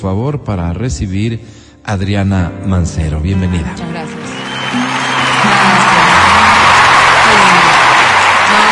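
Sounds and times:
speech: 0.0s - 5.0s
studio audience applause: 3.4s - 8.6s.

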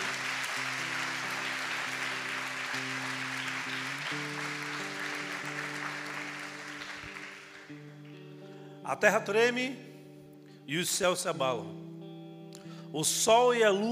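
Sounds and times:
audience applause: 0.0s - 8.0s
speech: 8.9s - 9.9s, 10.7s - 11.9s, 12.9s - 13.9s.

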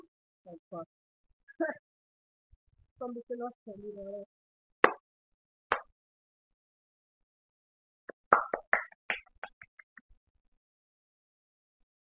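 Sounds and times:
speech: 0.4s - 1.0s, 3.0s - 4.4s
hand clapping: 4.8s - 5.0s, 5.7s - 5.9s, 8.1s - 10.0s.

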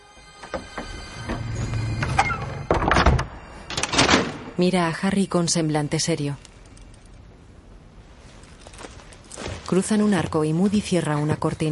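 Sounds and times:
door closing: 0.2s - 4.5s
speech: 4.6s - 6.5s, 9.7s - 11.7s.

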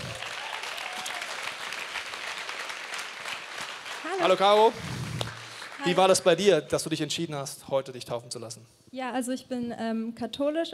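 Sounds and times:
audience applause in church service: 0.0s - 6.4s
speech: 4.1s - 4.9s, 5.8s - 10.7s.

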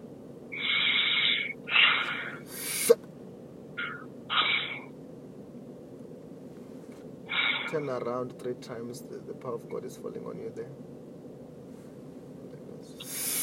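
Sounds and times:
steady low hum: 0.0s - 13.4s
heavy breathing in and out: 0.6s - 3.0s, 7.3s - 7.8s, 13.0s - 13.4s
speech: 7.8s - 10.9s.

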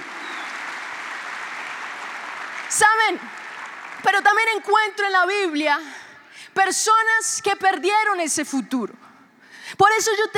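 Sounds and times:
audience applause: 0.0s - 4.7s
speech: 2.7s - 9.0s, 9.8s - 10.3s.

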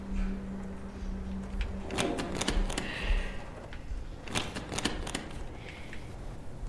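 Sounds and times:
low steady hum: 0.0s - 6.6s
locked door making clicking noise: 1.6s - 2.9s, 4.2s - 5.6s.

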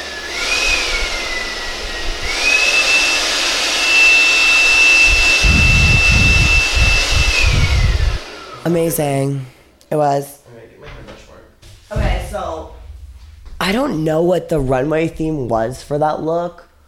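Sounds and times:
wind machine blowing: 0.1s - 8.6s
speech: 8.7s - 10.4s, 13.7s - 16.6s.

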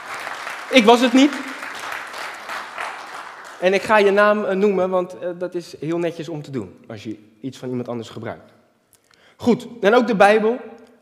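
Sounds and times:
audience applause: 0.0s - 4.0s
speech: 0.7s - 1.5s, 3.6s - 8.6s, 9.4s - 11.0s.

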